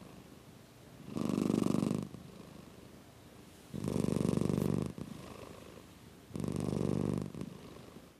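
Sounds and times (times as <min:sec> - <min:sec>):
domestic cat purring in low rumbling bursts: 0:01.0 - 0:02.9, 0:03.7 - 0:08.1.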